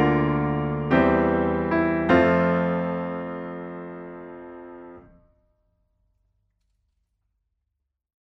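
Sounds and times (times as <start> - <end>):
piano accompaniment for a hymn: 0.0 - 5.3.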